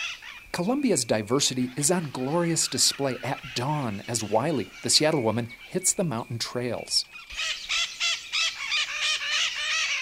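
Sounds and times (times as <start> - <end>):
speech: 0.6 - 7.6
parakeets squawking: 1.3 - 6.2, 7.1 - 10.0.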